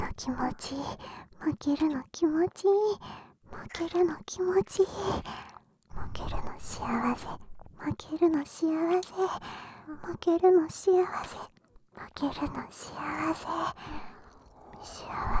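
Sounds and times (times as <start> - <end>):
whispering: 0.0 - 15.3
ear licking: 13.7 - 15.3.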